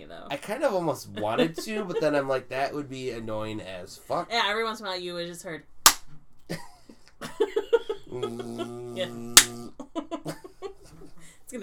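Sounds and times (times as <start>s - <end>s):
speech: 0.3s - 5.7s, 8.2s - 9.4s
laughter: 1.1s - 2.4s, 6.5s - 11.2s
hand clap sync marks: 9.4s - 9.6s.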